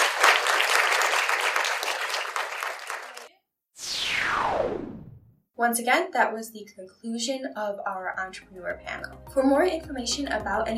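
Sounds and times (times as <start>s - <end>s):
audience round of applause: 0.0s - 3.3s
speech: 5.6s - 10.7s.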